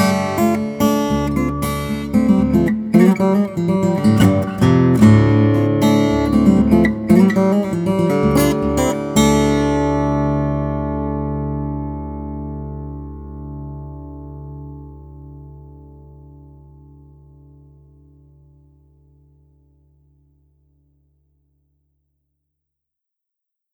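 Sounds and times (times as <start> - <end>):
solo blues guitar: 0.0 - 16.2.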